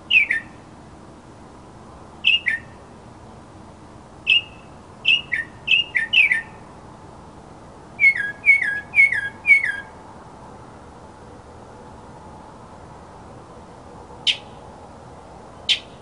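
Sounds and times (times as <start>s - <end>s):
mockingbird song: 0.1s - 0.6s, 2.2s - 2.8s, 4.2s - 6.6s, 8.0s - 9.9s, 14.3s - 14.5s, 15.7s - 16.0s.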